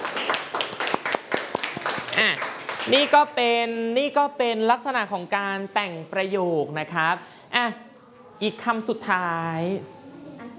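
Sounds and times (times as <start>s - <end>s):
class clapping hands: 0.0s - 3.3s
speech: 2.2s - 7.8s, 8.4s - 10.0s.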